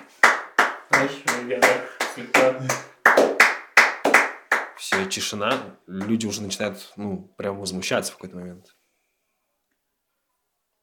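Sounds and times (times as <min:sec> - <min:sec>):
hand clapping at a concert: 0:00.0 - 0:06.4
speech: 0:00.9 - 0:03.3, 0:04.8 - 0:08.8.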